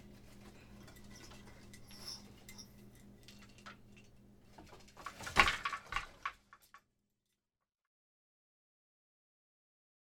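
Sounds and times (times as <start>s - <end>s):
82-year-old grandmother weaving on a loom: 0.0s - 6.8s.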